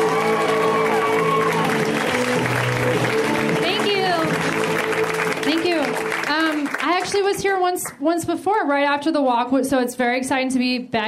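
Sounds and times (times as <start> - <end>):
audience applause: 0.0 - 7.6
speech: 7.2 - 11.0.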